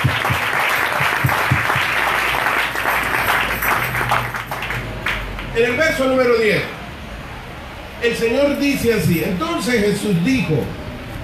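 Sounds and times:
audience applauding: 0.0 - 5.6
speech: 5.6 - 6.8, 8.0 - 10.8.

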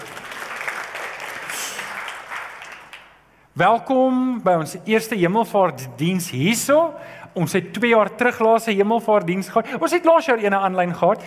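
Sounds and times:
crowd applause: 0.0 - 3.2
speech: 3.6 - 11.2.

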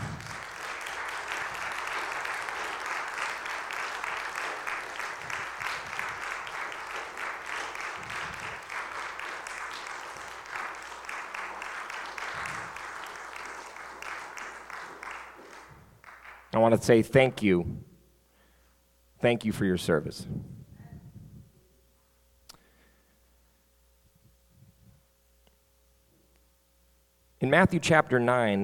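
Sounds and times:
audience applauding: 0.0 - 16.5
speech: 16.6 - 17.9, 19.2 - 20.5, 27.6 - 28.6.

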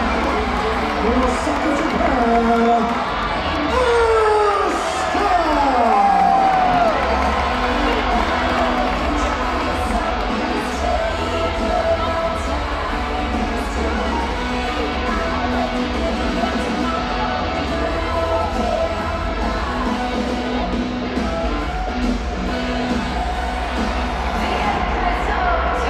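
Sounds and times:
crowd shouts and whoops: 0.0 - 9.5
large crowd roaring at a wrestling event at Madison Square Garden: 0.0 - 25.8.

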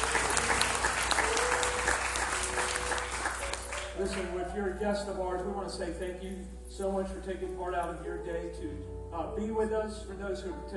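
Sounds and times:
audience applauding to welcome first-time guests: 0.0 - 4.6
speech: 4.8 - 10.7.

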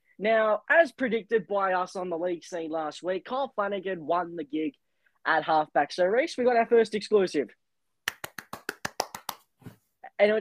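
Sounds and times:
speech: 0.2 - 7.6, 10.2 - 10.4
hand clap: 8.0 - 9.6.

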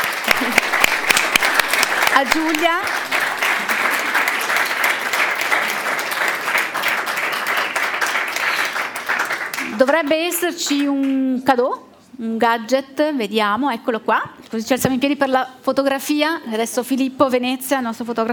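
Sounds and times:
audience applause: 0.0 - 10.2
person laughing: 0.3 - 1.0
speech: 2.2 - 3.0, 9.8 - 18.3.

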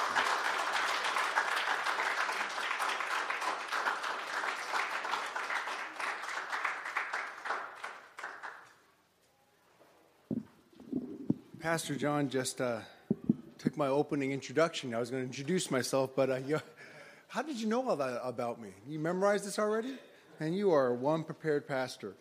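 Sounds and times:
congregation applause welcoming a pastor: 0.0 - 9.0
speech: 11.6 - 13.0, 13.6 - 22.1.

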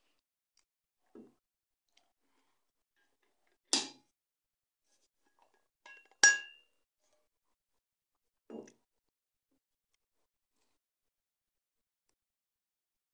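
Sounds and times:
glass clinking while drinking water: 5.9 - 6.7.

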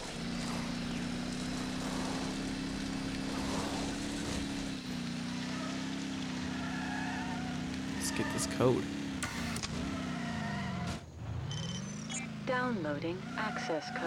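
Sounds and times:
vehicle engine drone in a video game: 0.0 - 14.0
speech: 8.2 - 9.0, 12.5 - 14.0.

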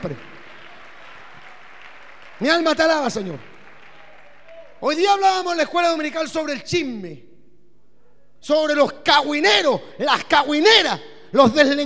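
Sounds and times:
speech: 0.0 - 0.4, 2.4 - 3.5, 4.8 - 7.3, 8.4 - 11.8
audience applause: 0.0 - 4.8.

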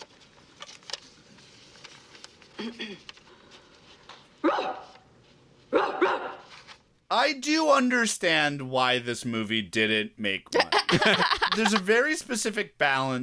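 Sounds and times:
speech: 2.6 - 3.2, 7.1 - 13.2
dog barking: 4.4 - 5.0, 5.7 - 6.5
laughter: 10.6 - 12.0.

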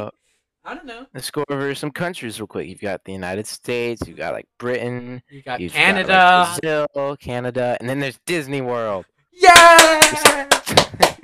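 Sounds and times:
speech: 0.0 - 11.0
hand clapping: 9.4 - 11.2.

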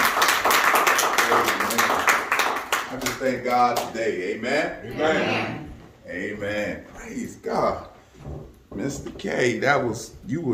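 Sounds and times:
hand clapping: 0.0 - 4.0
speech: 3.2 - 10.5.

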